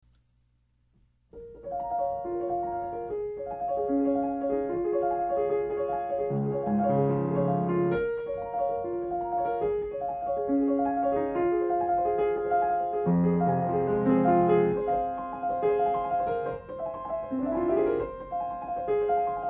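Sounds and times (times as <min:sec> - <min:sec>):
piano: 0:01.3 - 0:19.4.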